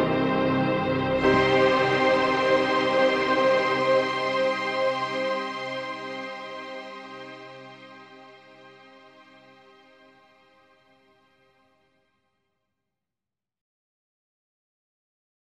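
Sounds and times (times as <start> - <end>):
instrumental prelude in C minor: 0.0 - 6.9.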